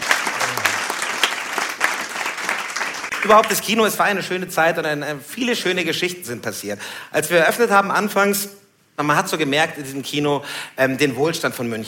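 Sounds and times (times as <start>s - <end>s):
audience applause during a German cabaret performance: 0.0s - 3.4s
low voice: 0.3s - 0.9s
speech: 3.2s - 11.8s.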